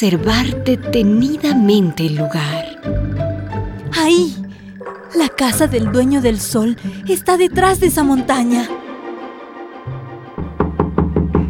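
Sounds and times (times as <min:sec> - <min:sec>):
speech: 0:00.0 - 0:03.2, 0:03.9 - 0:04.4, 0:05.1 - 0:08.8
knocking on a door: 0:10.6 - 0:11.4.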